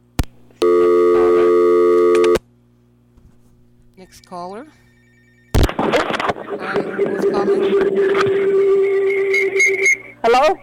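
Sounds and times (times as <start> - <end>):
faint hum: 0.0 - 10.6
telephone busy signal after a caller hangs up: 0.6 - 2.4, 4.0 - 10.0
speech: 4.1 - 4.9, 6.5 - 8.9, 10.2 - 10.6.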